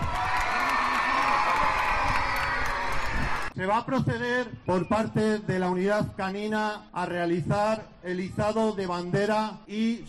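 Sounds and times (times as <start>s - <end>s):
audience applause: 0.0s - 3.5s
speech: 3.6s - 10.0s.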